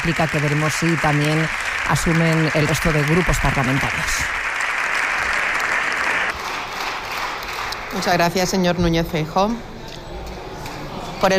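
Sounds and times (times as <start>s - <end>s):
speech: 0.0s - 4.5s, 7.9s - 9.7s
standing applause in parliament: 0.0s - 8.2s.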